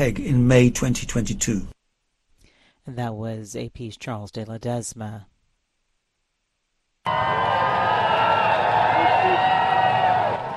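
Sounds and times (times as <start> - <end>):
speech: 0.0 - 1.8, 2.9 - 5.3
crowd cheering as King Charles arrived in Berlin: 7.1 - 10.5.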